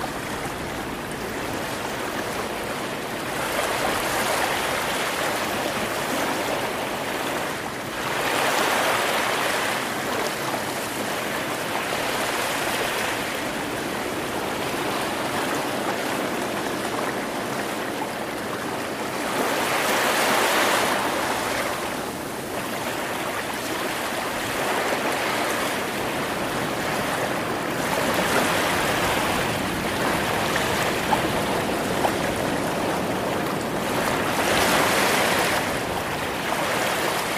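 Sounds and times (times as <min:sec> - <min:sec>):
constant low rumble from surf: 0:00.0 - 0:37.3
ocean waves washing at Secret Beach: 0:00.0 - 0:37.3.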